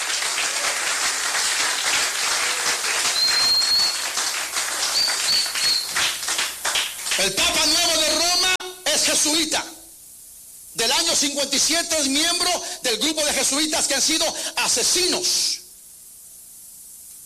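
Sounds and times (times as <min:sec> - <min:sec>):
crowd clapping: 0:00.0 - 0:08.3
whistles: 0:02.5 - 0:04.2, 0:04.8 - 0:06.1, 0:07.6 - 0:08.1
speech: 0:07.2 - 0:07.9, 0:09.2 - 0:09.8, 0:10.8 - 0:15.6.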